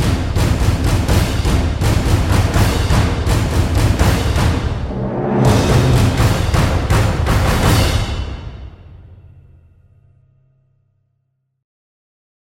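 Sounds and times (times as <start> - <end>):
drums: 0.0 - 9.4.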